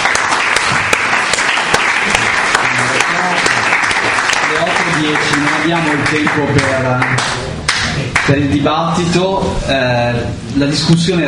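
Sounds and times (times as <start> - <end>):
audience applause: 0.0 - 8.3
speech: 5.1 - 7.5, 8.3 - 11.2.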